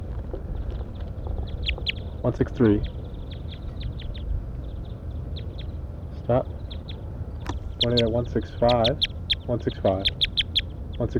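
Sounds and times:
low rumbling wash of noise: 0.0 - 11.1
speech: 2.2 - 3.0, 6.3 - 6.6, 7.8 - 10.3, 11.0 - 11.1
wild birds' duck-like quacks: 7.7 - 10.7.

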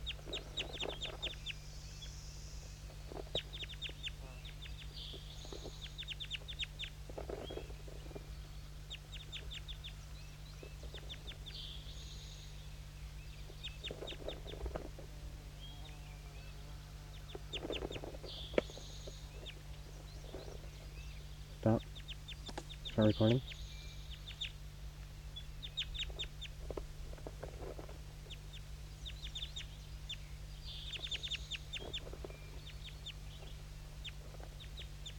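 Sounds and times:
birds calling: 0.0 - 35.1
speech: 23.0 - 23.6.

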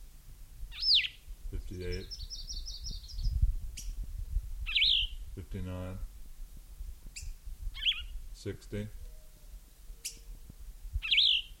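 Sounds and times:
faint low rumble: 0.0 - 11.5
bird calling while sitting on its nest: 0.7 - 4.0, 4.6 - 5.3, 7.2 - 8.2, 11.0 - 11.5
speech: 1.8 - 2.2, 5.5 - 6.1, 8.4 - 9.0.

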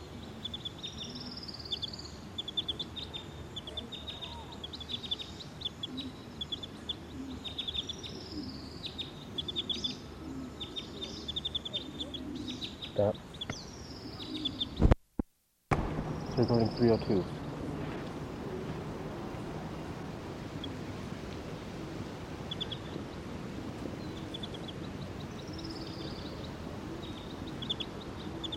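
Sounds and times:
bird chirps and trills: 0.0 - 14.9, 22.5 - 28.5
speech: 13.0 - 13.3, 16.4 - 17.4
low rumble: 15.7 - 25.1.

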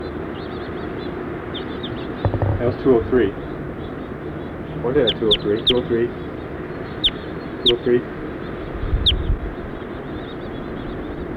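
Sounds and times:
house finches chirping: 0.4 - 11.3
low rumble: 2.3 - 7.2
speech: 2.6 - 3.4, 4.8 - 6.2, 7.6 - 8.2.

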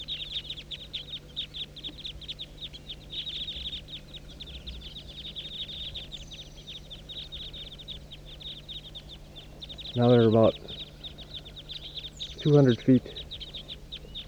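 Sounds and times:
flock of birds circling and calling: 0.0 - 14.2
low hum: 0.0 - 14.2
speech: 10.0 - 10.7, 12.4 - 13.2.

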